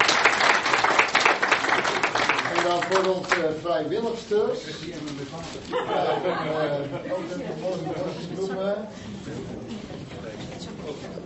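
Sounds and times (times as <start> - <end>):
audience applause: 0.0 - 3.4
speech: 2.7 - 11.2
laughter: 5.6 - 8.9.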